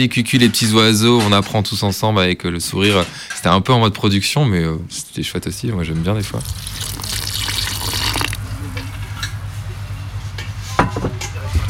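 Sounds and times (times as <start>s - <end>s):
speech: 0.0s - 7.0s
tap water running while feeding sourdough starter: 6.4s - 8.4s.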